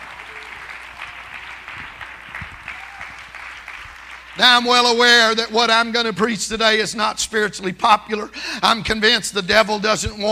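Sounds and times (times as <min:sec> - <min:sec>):
audience applause, clapping hands: 0:00.0 - 0:05.5
speech: 0:04.4 - 0:10.2.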